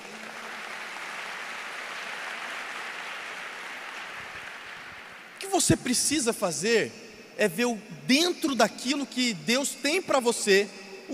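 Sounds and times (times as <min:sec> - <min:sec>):
audience applause: 0:00.0 - 0:05.4
speech: 0:05.4 - 0:11.1.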